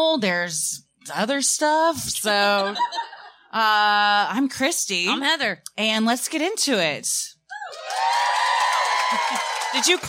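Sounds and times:
speech: 0:00.0 - 0:08.0, 0:09.1 - 0:10.0
audience cheering and whooping: 0:07.6 - 0:10.0.

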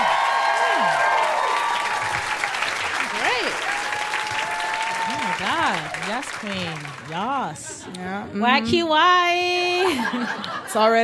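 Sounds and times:
audience applause: 0:00.0 - 0:07.5
speech: 0:05.7 - 0:11.0
laughter: 0:09.7 - 0:11.0.

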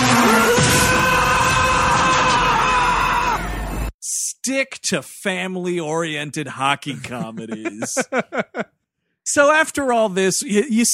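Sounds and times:
action movie scream: 0:00.0 - 0:03.5
speech: 0:04.5 - 0:10.9
laughter: 0:06.9 - 0:08.8.

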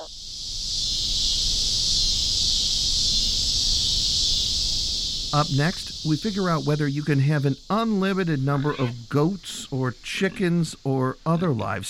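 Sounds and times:
chorus of cicadas buzzing: 0:00.0 - 0:11.8
speech: 0:05.3 - 0:11.8.

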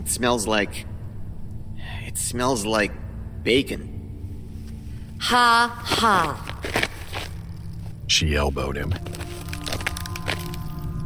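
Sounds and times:
speech: 0:00.1 - 0:00.9, 0:02.1 - 0:04.0, 0:05.2 - 0:06.8, 0:08.1 - 0:09.3
bone crunching underfoot: 0:05.8 - 0:08.1, 0:08.8 - 0:10.9.

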